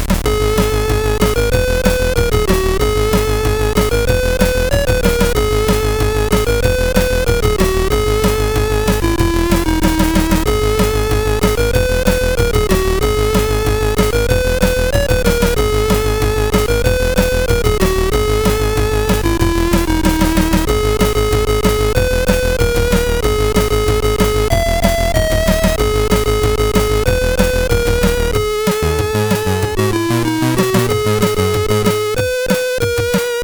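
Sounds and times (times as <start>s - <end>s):
SID chiptune music on a CSG8580R5 chip: 0.2s - 33.4s.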